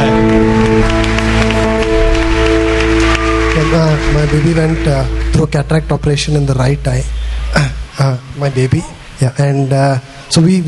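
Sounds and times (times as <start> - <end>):
audience clapping: 0.0 - 6.8
speech: 4.1 - 10.6.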